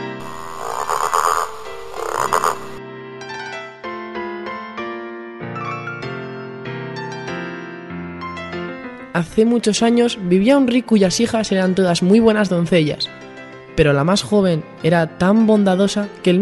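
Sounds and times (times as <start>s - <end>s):
rough raspy frog croaks: 0.0s - 2.8s
noisy rumble: 0.2s - 2.8s
speech: 9.2s - 13.2s, 13.8s - 16.4s.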